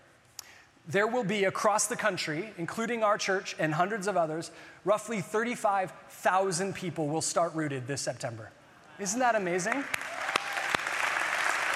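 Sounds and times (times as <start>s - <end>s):
speech: 0.9s - 10.1s
audience clapping: 9.6s - 11.7s.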